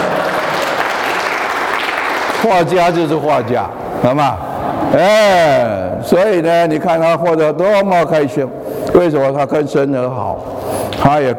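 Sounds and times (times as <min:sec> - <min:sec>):
audience applause: 0:00.0 - 0:03.2
speech: 0:02.4 - 0:11.3.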